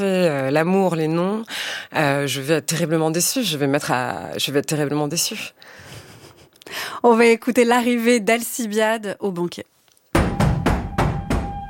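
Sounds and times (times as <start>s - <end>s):
speech: 0.0s - 5.9s, 6.7s - 9.7s
loud heavy knocking on a courtyard door: 10.2s - 11.6s.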